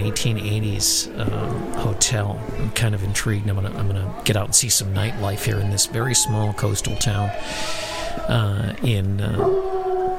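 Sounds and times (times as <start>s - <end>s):
speech: 0.1s - 9.7s
hound dog howling: 9.4s - 10.1s.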